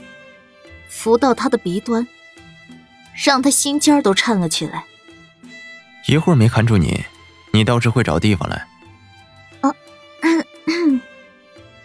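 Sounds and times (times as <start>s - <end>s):
speech: 0.9s - 2.2s, 3.2s - 4.9s, 6.1s - 8.7s
person coughing: 10.2s - 11.0s.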